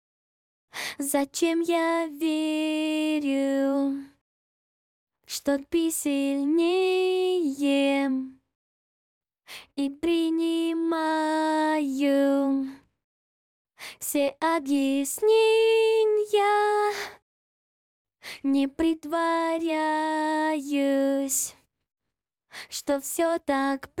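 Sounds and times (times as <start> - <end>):
a cappella singing: 1.0 - 4.2, 5.3 - 8.4, 9.7 - 12.8, 14.0 - 17.2, 18.4 - 21.6, 22.7 - 23.9.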